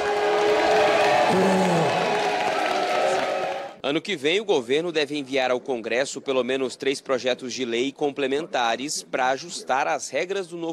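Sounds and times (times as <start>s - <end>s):
applause in a session of Congress: 0.0s - 3.8s
speech: 1.3s - 1.6s, 3.8s - 10.7s.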